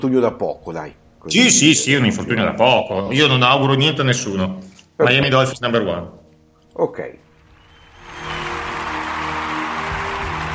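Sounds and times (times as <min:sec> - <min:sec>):
speech: 0:00.0 - 0:06.2, 0:06.8 - 0:07.2
audience applause: 0:07.4 - 0:10.5.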